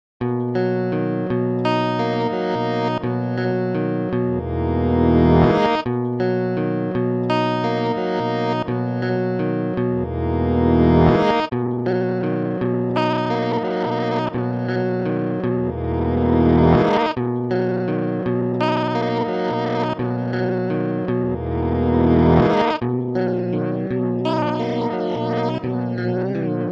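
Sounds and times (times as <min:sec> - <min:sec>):
electric guitar: 0:00.2 - 0:26.7.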